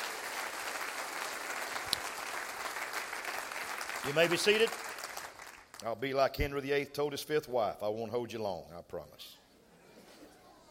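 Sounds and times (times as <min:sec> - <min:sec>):
audience applauding: 0:00.0 - 0:06.0
speech: 0:04.0 - 0:04.9, 0:05.8 - 0:09.4.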